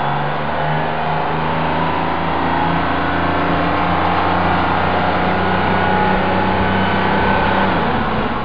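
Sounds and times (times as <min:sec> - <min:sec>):
bus engine: 0:00.0 - 0:08.4.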